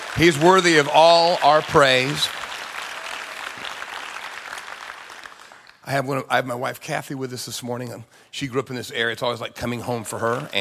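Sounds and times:
audience applause: 0.0 - 5.8, 10.2 - 10.5
speech: 0.2 - 2.4, 5.9 - 10.5.

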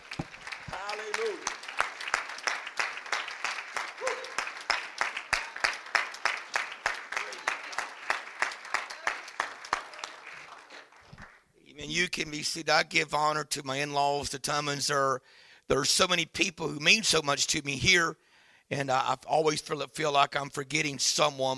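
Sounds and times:
audience clapping hands: 0.0 - 11.5
speech: 11.9 - 21.5.

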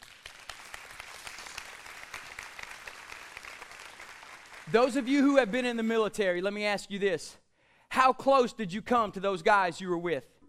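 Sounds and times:
audience applause: 0.0 - 5.4
speech: 4.7 - 10.4.

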